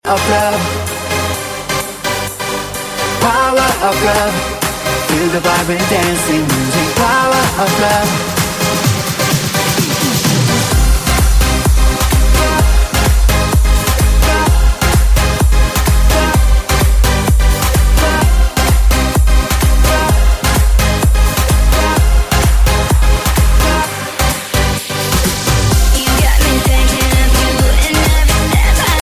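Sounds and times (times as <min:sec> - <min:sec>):
Norwegian power tune: 0:00.1 - 0:29.0.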